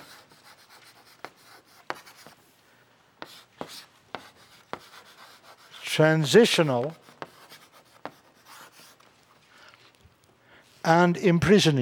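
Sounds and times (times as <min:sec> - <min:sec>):
marker or chalk writing on a board: 0:00.0 - 0:02.5, 0:03.2 - 0:05.8, 0:06.6 - 0:09.1
speech: 0:06.0 - 0:07.0, 0:10.9 - 0:11.8.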